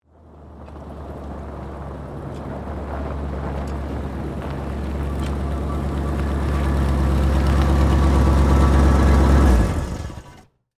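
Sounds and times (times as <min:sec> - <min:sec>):
Jeep approaching: 0:00.0 - 0:10.7.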